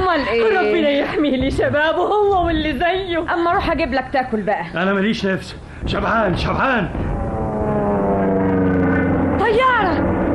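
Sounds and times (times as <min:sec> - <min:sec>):
speech: 0:00.1 - 0:07.2
propeller airplane droning overhead: 0:05.6 - 0:10.3.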